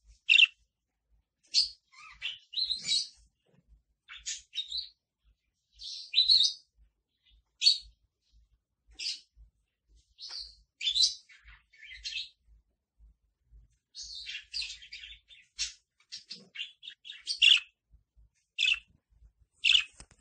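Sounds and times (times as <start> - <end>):
lovebird singing: 0.1 - 0.6, 1.4 - 3.3, 4.0 - 8.3, 8.9 - 12.5, 13.8 - 17.8, 18.5 - 18.9, 19.6 - 20.0.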